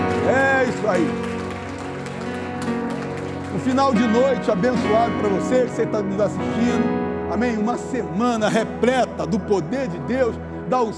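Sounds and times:
audience applauding: 0.0s - 4.7s
speech: 0.3s - 1.3s, 3.6s - 10.9s.

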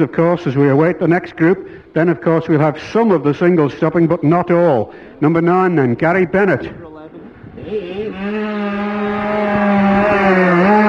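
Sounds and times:
speech: 0.0s - 6.9s
racing motorcycle engine pulling into the pits and braking: 7.2s - 10.8s.

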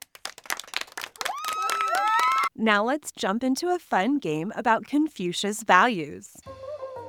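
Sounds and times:
hand claps: 0.0s - 2.4s
speech: 2.6s - 6.6s.

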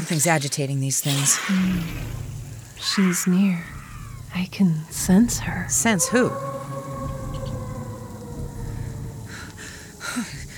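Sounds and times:
speech: 0.1s - 6.8s
creature howl: 2.8s - 4.3s, 5.2s - 10.5s.

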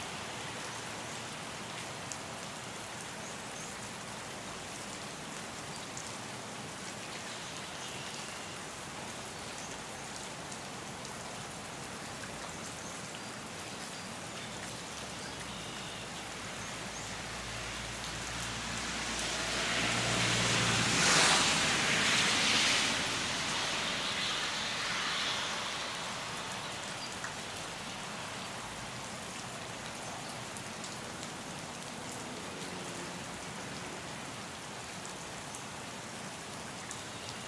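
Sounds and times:
steady rain pattering on a surface: 0.0s - 37.4s
passing vehicle in rain: 17.5s - 26.9s.

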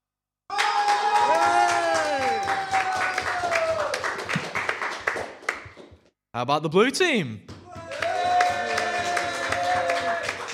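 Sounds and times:
studio audience cheering and whooping: 0.5s - 4.4s, 7.7s - 10.5s
studio audience clapping: 0.5s - 6.1s, 7.4s - 10.5s
speech: 6.4s - 7.5s.

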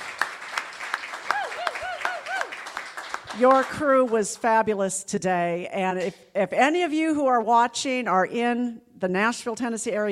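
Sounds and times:
audience applause: 0.0s - 4.1s
speech: 3.4s - 10.1s.

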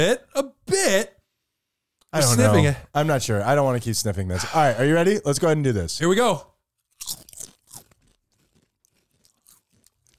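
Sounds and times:
speech: 0.0s - 1.1s, 2.1s - 7.1s
chip being bitten and chewed: 6.8s - 10.1s.

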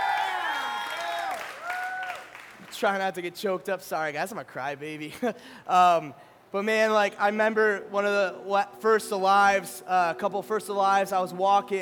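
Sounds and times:
audience round of applause: 0.0s - 2.7s
speech: 2.8s - 11.8s.

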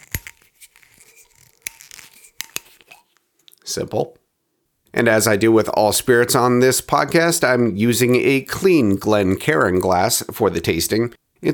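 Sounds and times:
plastic screw cap cracking open: 0.0s - 3.2s
speech: 3.7s - 4.2s, 5.0s - 11.5s.

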